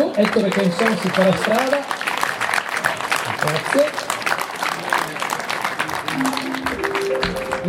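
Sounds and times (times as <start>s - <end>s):
large crowd applause in a town square: 0.0s - 7.6s
speech: 0.2s - 2.0s, 3.4s - 4.0s.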